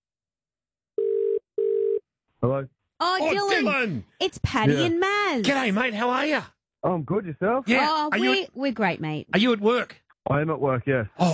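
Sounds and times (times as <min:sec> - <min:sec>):
telephone ringback tone as radio hosts call a listener: 0:01.0 - 0:02.0
speech: 0:02.4 - 0:11.3.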